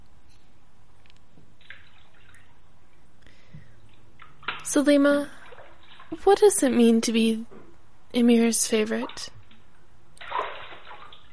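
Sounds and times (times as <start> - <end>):
bath water splashing: 1.6 - 6.2, 9.0 - 11.3
speech: 4.7 - 5.4, 6.1 - 7.5, 8.1 - 9.4.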